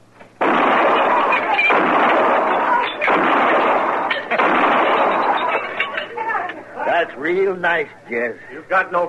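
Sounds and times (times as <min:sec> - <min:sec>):
gunshots shooting at lined-up glasses: 0:00.4 - 0:06.0
speech: 0:07.1 - 0:09.0.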